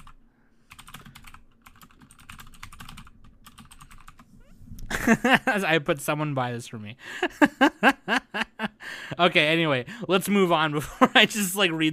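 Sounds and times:
rapid typing on a computer keyboard: 0.0s - 4.3s
laughter: 4.9s - 5.7s, 7.1s - 8.8s, 10.8s - 11.5s
speech: 5.1s - 8.2s, 9.2s - 11.9s.

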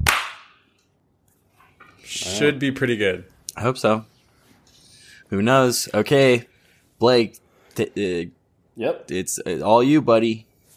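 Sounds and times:
single hand clap: 0.0s - 0.6s
speech: 2.1s - 4.1s, 5.3s - 10.5s.

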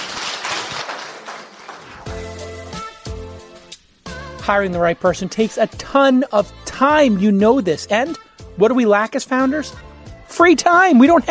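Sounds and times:
audience clapping and cheering: 0.0s - 2.5s
speech: 4.5s - 11.3s.

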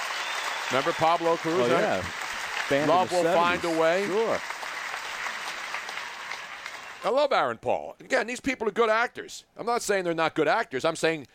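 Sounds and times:
round of applause: 0.0s - 7.2s
speech: 0.7s - 4.5s, 7.0s - 11.3s.

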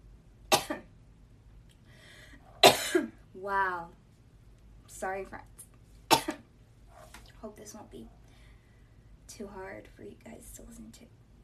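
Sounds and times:
coughing: 0.5s - 0.9s, 2.6s - 3.2s, 6.1s - 6.4s
speech: 3.4s - 4.0s, 4.9s - 5.6s, 7.4s - 8.2s, 9.3s - 11.2s.

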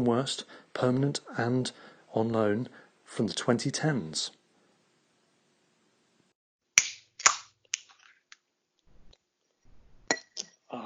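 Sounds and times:
speech: 0.0s - 4.4s
glass clinking while someone has a beer: 10.0s - 10.5s.

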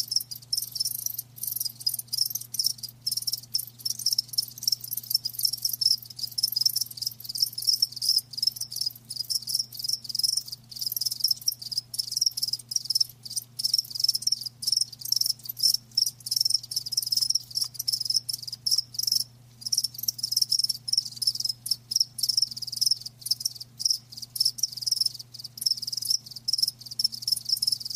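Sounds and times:
crickets chirping: 0.0s - 27.9s.

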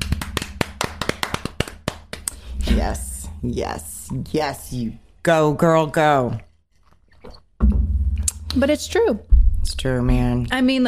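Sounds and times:
hand clapping: 0.0s - 2.4s
speech: 2.7s - 6.5s, 8.5s - 10.8s.

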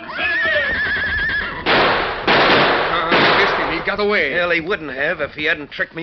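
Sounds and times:
whinny-like cry: 0.0s - 1.7s
gunshots: 1.6s - 4.6s
speech: 3.9s - 6.0s.

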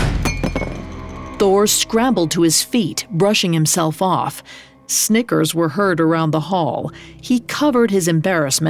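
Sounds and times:
mug falling to the ground with a clank: 0.2s - 1.4s
speech: 1.4s - 8.6s.

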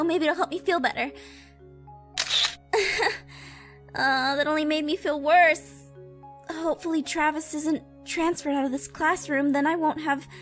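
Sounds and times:
speech: 0.0s - 1.5s, 2.8s - 5.8s, 6.5s - 10.3s
camera shutter firing as a selfie is taken: 2.2s - 2.7s.

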